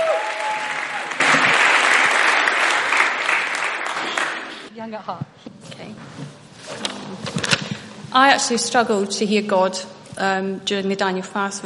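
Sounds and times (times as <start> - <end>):
audience applause: 0.0 - 4.7
speech: 4.8 - 5.7, 8.1 - 11.6.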